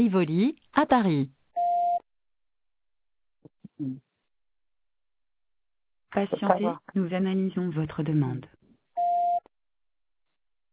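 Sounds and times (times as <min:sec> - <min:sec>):
speech: 0:00.0 - 0:01.4, 0:03.8 - 0:04.1, 0:06.1 - 0:08.6
telephone voice-menu beep: 0:09.0 - 0:09.4.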